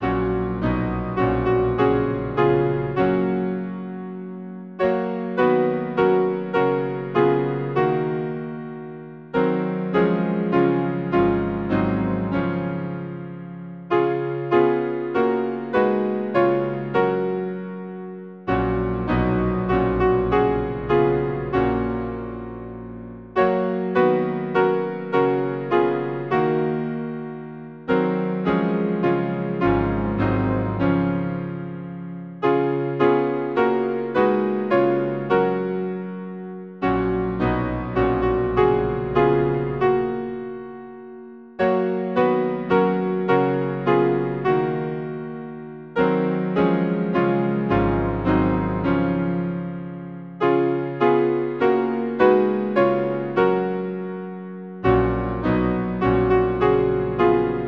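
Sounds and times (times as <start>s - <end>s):
hymn on piano: 0.0s - 57.6s.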